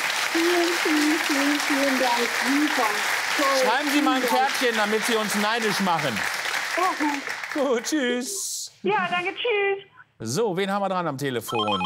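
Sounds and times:
audience applause: 0:00.0 - 0:08.2
speech: 0:00.4 - 0:11.8.

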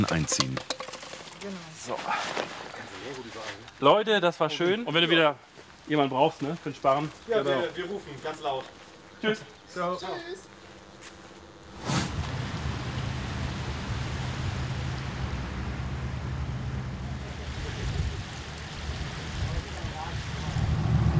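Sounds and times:
speech: 0:00.0 - 0:00.8, 0:01.4 - 0:10.5
wind: 0:00.0 - 0:21.1
boat engine drone leaving the Elbe-Seitenkanal onto the Elbe river: 0:09.5 - 0:21.1
water wash: 0:11.8 - 0:21.1.

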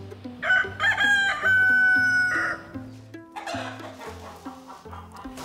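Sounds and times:
rooster crowing on a farm: 0:00.4 - 0:02.8, 0:03.4 - 0:04.0
hens clucking on a farm: 0:00.5 - 0:05.4.

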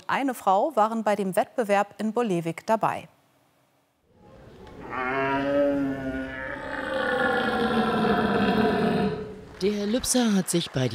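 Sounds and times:
speech: 0:00.1 - 0:03.2, 0:09.6 - 0:10.9
person imitating a red deer stag's call: 0:04.8 - 0:09.4.

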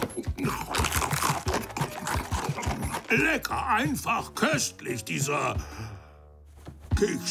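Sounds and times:
crunchy cookie being bitten and chewed: 0:00.0 - 0:03.6
speech: 0:03.1 - 0:05.9, 0:07.0 - 0:07.2.

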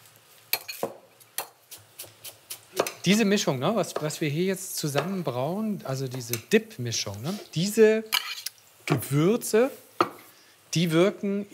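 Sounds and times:
knife cutting coriander: 0:00.8 - 0:03.0
speech: 0:03.0 - 0:08.3, 0:08.9 - 0:09.8, 0:10.8 - 0:11.5.

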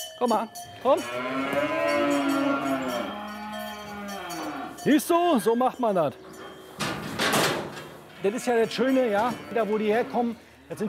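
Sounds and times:
speech: 0:00.2 - 0:02.4, 0:04.8 - 0:06.3, 0:08.2 - 0:10.8
cattle mooing: 0:00.8 - 0:04.8, 0:08.0 - 0:10.4.

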